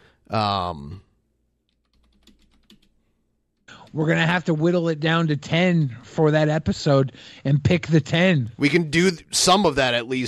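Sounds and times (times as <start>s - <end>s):
speech: 0.3s - 1.1s, 3.9s - 10.2s
typing on a computer keyboard: 1.7s - 3.0s.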